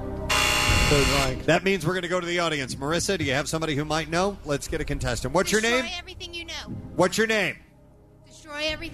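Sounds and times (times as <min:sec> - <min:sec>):
game show buzzer: 0:00.3 - 0:01.4
speech: 0:00.9 - 0:07.6, 0:08.5 - 0:08.9.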